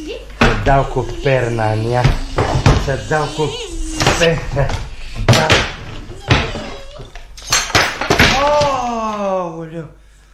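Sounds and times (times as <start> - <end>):
speech: 0.0 - 5.7, 9.7 - 10.0
person crying out: 0.7 - 4.9, 8.2 - 9.4
lamp falling and crashing: 5.3 - 8.8.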